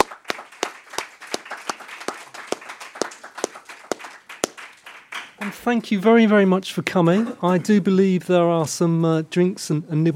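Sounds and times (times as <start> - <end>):
audience applause: 0.0 - 5.5
speech: 5.4 - 10.1.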